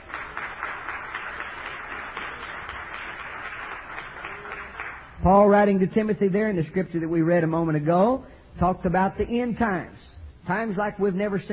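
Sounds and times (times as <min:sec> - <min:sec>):
audience clapping hands: 0:00.0 - 0:05.2
speech: 0:05.2 - 0:11.5.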